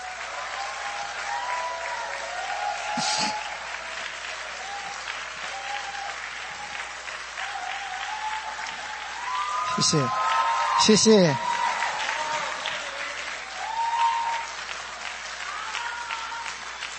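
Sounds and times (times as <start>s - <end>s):
audience applause: 0.0s - 16.9s
speech: 3.0s - 3.5s, 9.8s - 10.2s, 10.8s - 11.5s.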